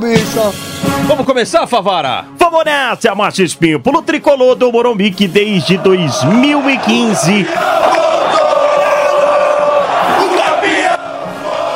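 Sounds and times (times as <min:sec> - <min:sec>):
speech: 0:00.0 - 0:08.6
São Paulo football supporters cheering: 0:05.2 - 0:11.7.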